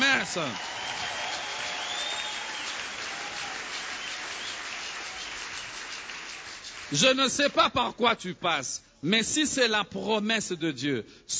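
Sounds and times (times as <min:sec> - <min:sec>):
church congregation applauding: 0:00.0 - 0:07.7
speech: 0:00.3 - 0:01.0, 0:06.9 - 0:11.3.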